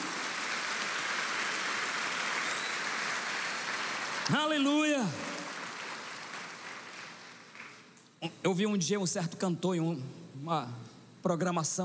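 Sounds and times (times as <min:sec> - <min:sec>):
audience applause: 0:00.0 - 0:07.9
speech: 0:04.3 - 0:05.3, 0:08.2 - 0:11.8.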